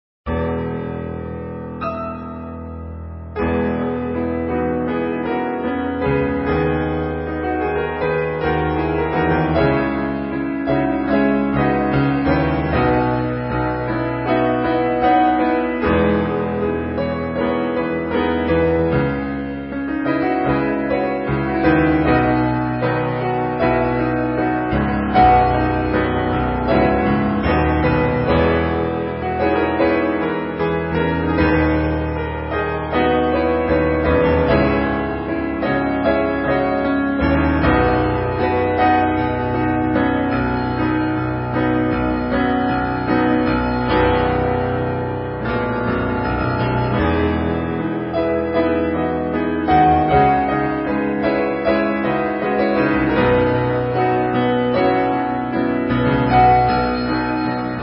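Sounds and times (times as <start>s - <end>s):
piano: 0.0s - 57.8s.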